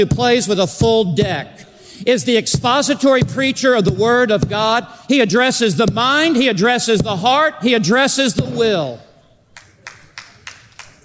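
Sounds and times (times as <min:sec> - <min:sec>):
speech: 0:00.0 - 0:09.0
hands clapping: 0:09.5 - 0:11.0.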